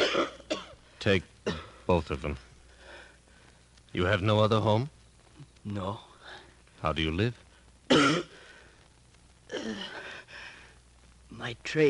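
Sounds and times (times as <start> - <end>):
person coughing: 0.0 - 0.8, 1.5 - 1.8, 7.9 - 8.4, 9.5 - 10.0
speech: 1.0 - 2.5, 3.9 - 5.0, 5.6 - 8.4, 9.6 - 10.0, 11.3 - 11.8.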